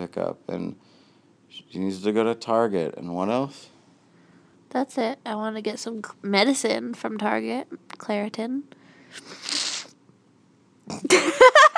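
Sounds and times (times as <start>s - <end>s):
speech: 0.0s - 3.7s, 4.7s - 9.6s, 10.9s - 11.5s
sniff: 9.0s - 10.0s
laughter: 11.0s - 11.7s.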